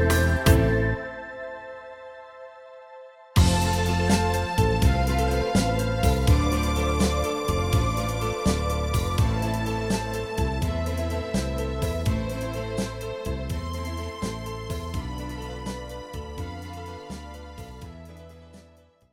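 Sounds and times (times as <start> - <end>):
brass music: 0.0 - 15.2.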